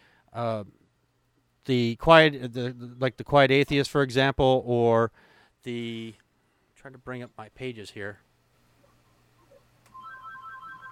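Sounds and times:
speech: 0:00.3 - 0:00.8, 0:01.6 - 0:06.2, 0:06.8 - 0:08.2
mobile phone ringing in audience: 0:09.9 - 0:10.9.

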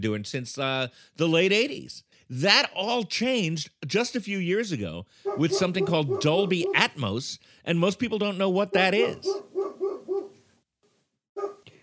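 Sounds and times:
speech: 0:00.0 - 0:09.5
dog barking under the porch: 0:05.2 - 0:06.9, 0:08.8 - 0:10.4, 0:11.4 - 0:11.7.

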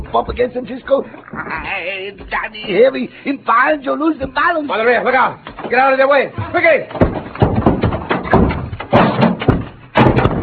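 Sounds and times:
speech: 0:00.1 - 0:07.1
heavy wooden packing cases toppling over: 0:05.3 - 0:10.4.

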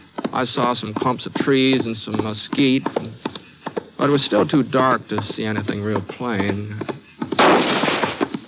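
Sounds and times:
speech: 0:00.4 - 0:03.2, 0:04.0 - 0:07.8
gunshot: 0:07.4 - 0:08.4.

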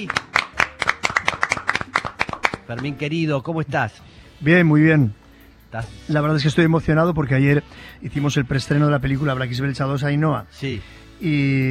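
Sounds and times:
speech: 0:00.0 - 0:00.2, 0:02.7 - 0:11.6
audience applause: 0:00.0 - 0:02.9.

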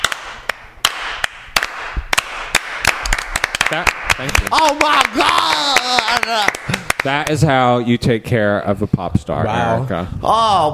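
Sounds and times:
slow building hand clapping: 0:00.0 - 0:07.4
speech: 0:03.7 - 0:10.7.

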